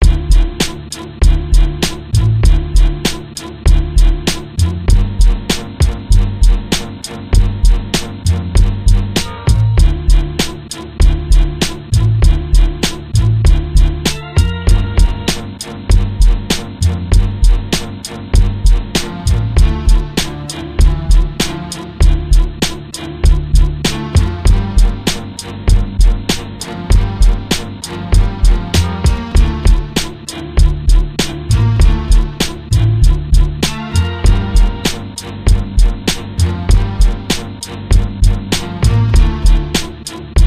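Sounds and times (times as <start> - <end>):
music beat: 0.0 - 40.4.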